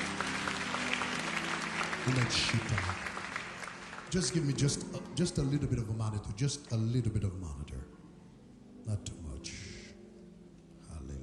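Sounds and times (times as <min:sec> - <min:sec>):
audience applauding: 0:00.0 - 0:05.5
speech: 0:02.0 - 0:03.1, 0:04.1 - 0:08.0, 0:08.9 - 0:09.6.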